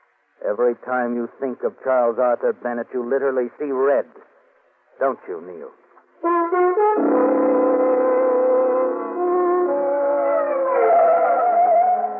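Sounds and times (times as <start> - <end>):
speech: 0.4 - 4.3, 5.0 - 7.4
ambulance arriving with siren: 6.9 - 12.1.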